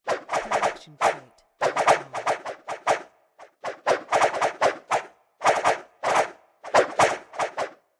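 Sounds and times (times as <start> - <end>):
arrow swooshes: 0.1 - 7.9.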